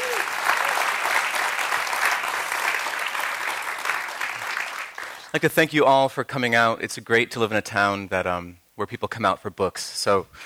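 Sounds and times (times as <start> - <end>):
audience applause: 0.0 - 5.3
speech: 5.3 - 10.4.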